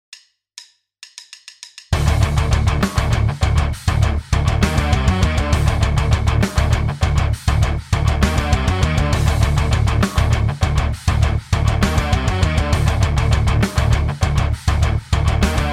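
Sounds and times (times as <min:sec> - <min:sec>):
rhythm: 0:01.1 - 0:15.7.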